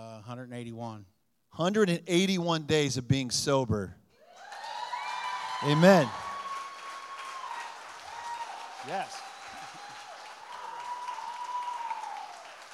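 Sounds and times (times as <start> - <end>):
speech: 0.3 - 4.0, 5.6 - 6.2, 8.9 - 9.2
audience applause: 4.4 - 12.7.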